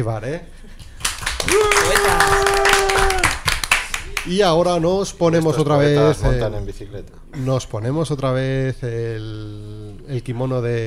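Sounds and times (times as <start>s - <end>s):
speech: 0.0s - 0.8s, 1.4s - 3.2s, 4.1s - 10.8s
group applauding: 0.8s - 4.8s
high cheer or whoop: 1.3s - 4.2s.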